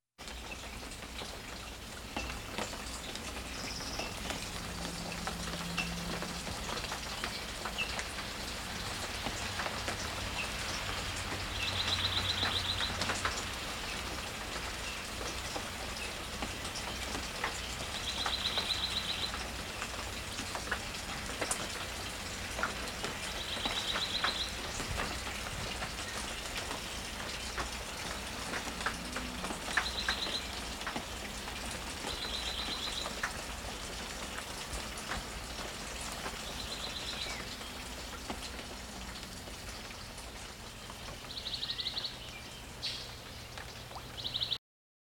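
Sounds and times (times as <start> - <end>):
water flowing in a drain: 0.2 - 44.4
dawn chorus of birds singing: 2.5 - 8.0, 10.4 - 13.4, 15.9 - 19.6, 23.0 - 25.2, 26.0 - 30.9, 32.0 - 33.4, 36.2 - 38.1, 40.7 - 44.6.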